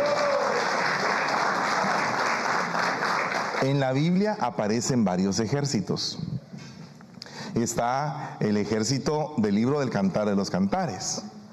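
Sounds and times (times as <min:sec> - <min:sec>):
audience applauding: 0:00.0 - 0:03.8
speech: 0:03.6 - 0:06.3, 0:07.6 - 0:11.3.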